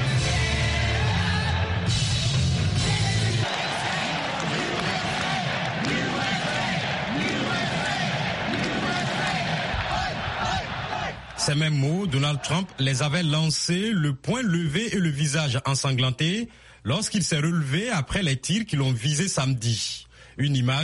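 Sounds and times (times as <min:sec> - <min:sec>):
convention delegates roaring and cheering: 0:00.0 - 0:13.5
crowd shouts and whoops: 0:02.6 - 0:11.4
speech: 0:11.4 - 0:20.8.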